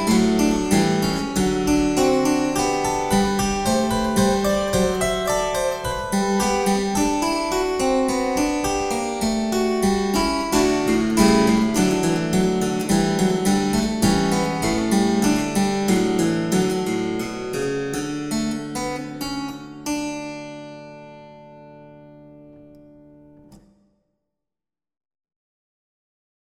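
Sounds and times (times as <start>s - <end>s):
spinet: 0.0s - 19.5s.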